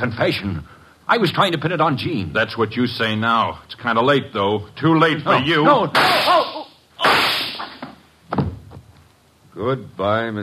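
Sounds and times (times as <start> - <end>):
speech: 0.0 - 6.7, 9.6 - 10.4
gunshot sound effect in a detective radio drama: 6.0 - 7.8
soft thuds and knocks: 7.8 - 8.9.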